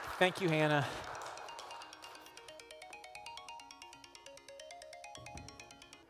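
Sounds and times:
speech: 0.2 - 1.1
timer alarm ringing: 0.2 - 6.0.

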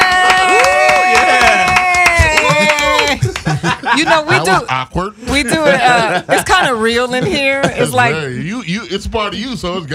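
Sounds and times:
crowd cheering with whoops and yells: 0.0 - 3.3
scattered clapping: 0.0 - 3.7
laughter: 1.2 - 8.4
speech: 4.0 - 9.9.

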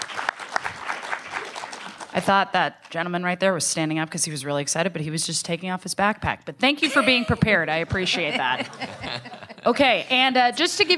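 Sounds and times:
audience applause: 0.0 - 2.2
speech: 2.2 - 10.9
laughter: 6.8 - 10.1.

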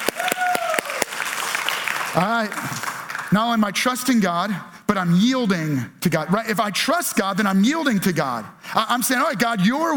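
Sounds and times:
audience applause: 0.0 - 3.3
speech: 2.2 - 9.9.

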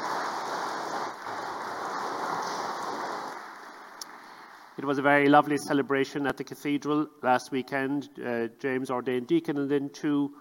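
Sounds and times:
round of applause: 0.0 - 4.8
speech: 4.8 - 10.3.

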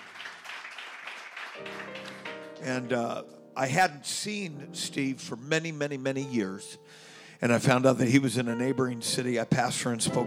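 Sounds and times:
audience clapping hands: 0.0 - 3.0
speech: 1.6 - 10.2.

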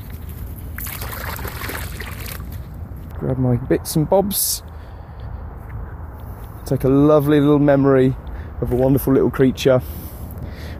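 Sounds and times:
water being poured back out: 0.8 - 2.6
speech: 3.2 - 4.7, 6.7 - 10.0.

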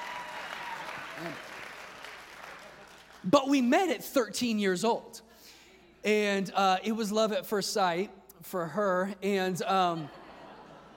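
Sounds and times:
audience applause: 0.0 - 3.2
speech: 1.2 - 1.5, 3.2 - 5.3, 6.0 - 10.2
laughter: 9.8 - 10.9.

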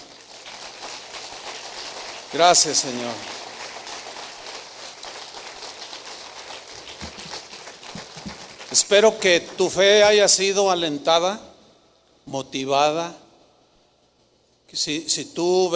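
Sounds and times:
audience applause: 0.0 - 9.7
speech: 2.3 - 3.4, 8.9 - 11.5, 12.3 - 13.2, 14.7 - 15.7.

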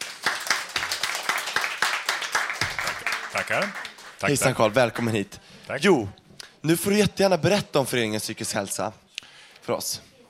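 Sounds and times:
applause: 0.0 - 5.2
speech: 3.3 - 9.0, 9.6 - 10.1.

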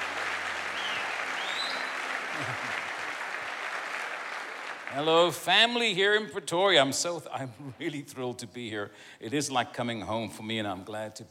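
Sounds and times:
church congregation in Pretoria applauding guest speaker Prophet Ed Traut: 0.0 - 6.2
speech: 2.4 - 2.8, 4.9 - 11.2.

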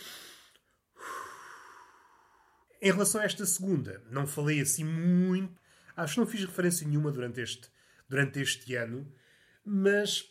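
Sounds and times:
deep breath: 0.0 - 2.8, 5.6 - 6.0, 7.7 - 8.1, 9.1 - 9.7
speech: 2.8 - 10.3.

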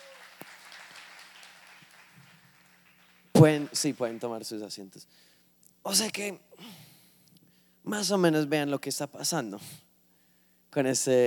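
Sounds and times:
audience applause: 0.0 - 4.4
speech: 3.4 - 6.8, 7.9 - 9.9, 10.7 - 11.2.

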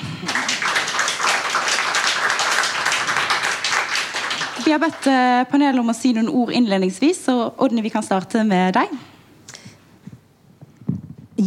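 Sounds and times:
audience applause: 0.0 - 5.2
speech: 4.7 - 9.1.

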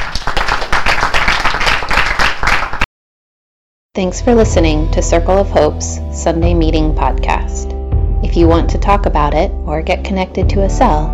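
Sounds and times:
audience clapping: 0.0 - 2.9
speech: 4.0 - 11.1.

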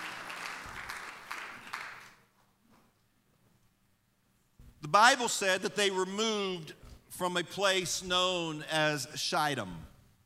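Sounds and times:
audience applause: 0.0 - 2.2
speech: 4.8 - 9.9.

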